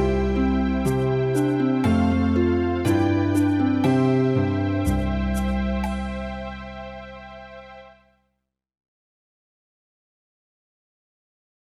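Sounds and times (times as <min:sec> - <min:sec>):
instrumental music: 0:00.0 - 0:08.1.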